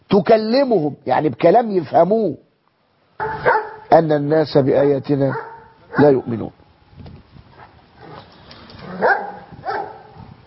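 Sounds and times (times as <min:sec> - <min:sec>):
speech: 0:00.2 - 0:02.4, 0:03.2 - 0:06.6
baladi dog and Dalmatian barking and yipping: 0:03.2 - 0:03.9, 0:05.3 - 0:06.3, 0:07.6 - 0:10.2.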